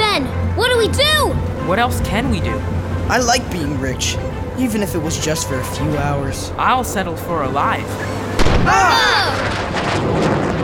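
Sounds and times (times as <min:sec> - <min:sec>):
speech: 0:00.8 - 0:10.4
cannon firing a warning shot at a ship: 0:08.4 - 0:10.6
person crying out: 0:08.7 - 0:09.5.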